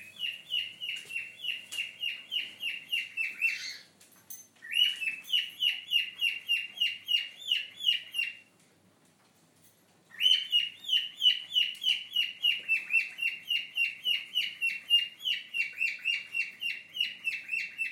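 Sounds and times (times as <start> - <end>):
cockatiel calling and chirping: 0.0 - 3.9, 4.6 - 8.4, 10.1 - 17.8.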